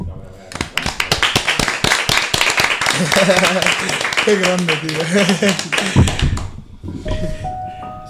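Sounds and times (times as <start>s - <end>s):
hand clapping: 0.5s - 6.6s
laughter: 2.7s - 7.5s
speech: 3.0s - 6.2s.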